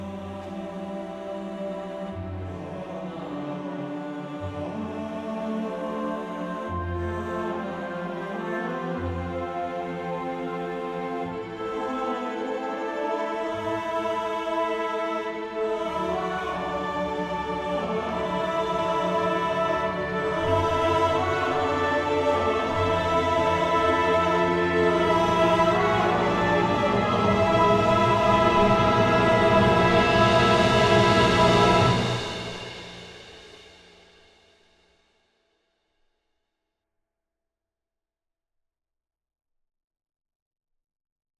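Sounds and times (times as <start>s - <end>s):
orchestra playing: 0.1s - 33.2s.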